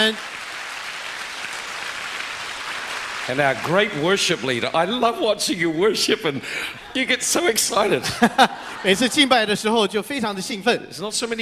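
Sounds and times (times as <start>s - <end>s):
speech: 0.0s - 0.3s, 3.3s - 11.4s
audience clapping for the worship band: 0.0s - 5.1s
laughter: 5.9s - 10.9s.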